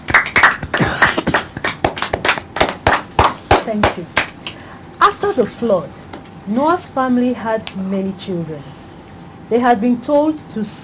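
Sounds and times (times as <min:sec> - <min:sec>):
round of applause from a group: 0:00.0 - 0:04.6
speech: 0:03.7 - 0:04.2, 0:05.0 - 0:08.8, 0:09.5 - 0:10.8.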